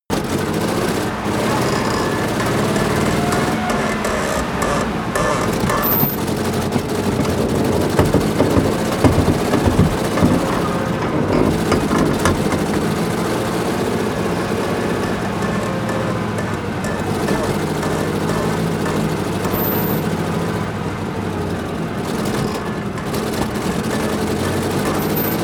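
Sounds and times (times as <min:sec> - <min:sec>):
medium damaged tank running unsteadily: 0:00.0 - 0:25.4.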